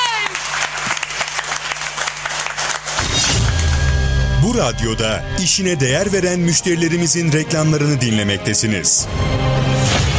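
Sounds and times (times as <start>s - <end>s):
applause for a singer on the radio: 0.0s - 4.5s
speech: 4.5s - 10.1s.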